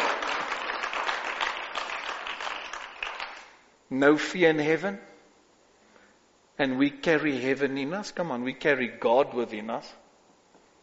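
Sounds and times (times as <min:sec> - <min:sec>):
audience applauding: 0:00.0 - 0:03.5
speech: 0:03.9 - 0:05.1, 0:06.6 - 0:10.0.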